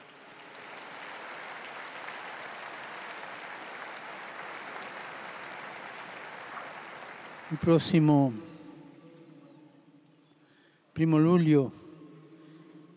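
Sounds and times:
crowd applause: 0.0s - 8.4s
speech: 7.5s - 8.5s, 11.0s - 11.8s.

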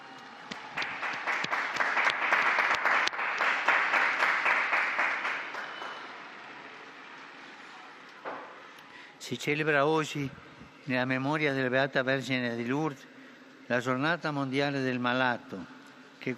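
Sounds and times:
crowd applause: 0.0s - 7.0s
speech: 9.3s - 13.1s, 13.7s - 16.3s.

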